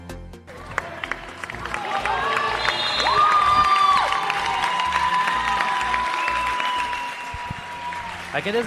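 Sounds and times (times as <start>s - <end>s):
fans and players clapping: 0.5s - 8.6s
whistling: 2.4s - 4.1s, 6.0s - 7.7s.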